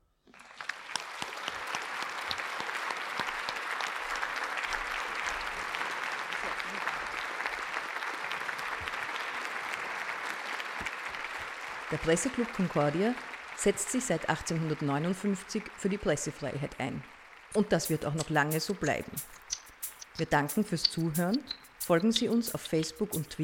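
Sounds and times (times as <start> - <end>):
audience applause: 0.3 - 15.9
speech: 11.9 - 19.4, 20.2 - 23.4.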